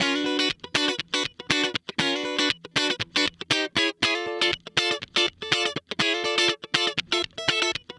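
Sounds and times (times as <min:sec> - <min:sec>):
guitar licks: 0:00.0 - 0:07.9.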